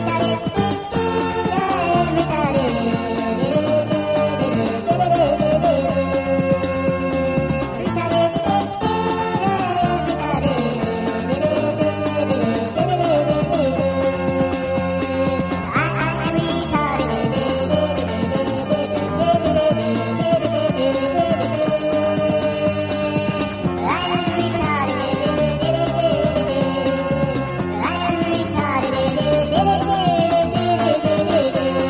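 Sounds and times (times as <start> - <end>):
music: 0.0 - 31.8.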